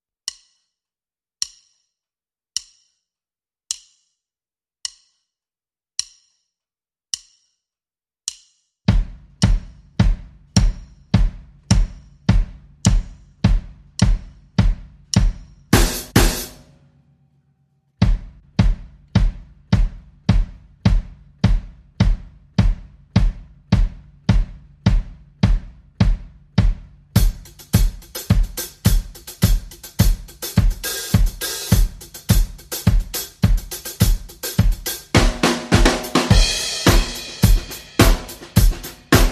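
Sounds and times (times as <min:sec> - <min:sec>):
almost funky drums: 0:08.9 - 0:16.6, 0:18.0 - 0:39.3.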